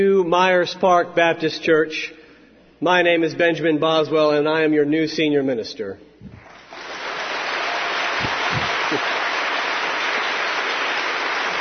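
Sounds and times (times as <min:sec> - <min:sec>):
speech: 0:00.0 - 0:02.2, 0:02.8 - 0:06.1
audience applause: 0:06.4 - 0:11.5.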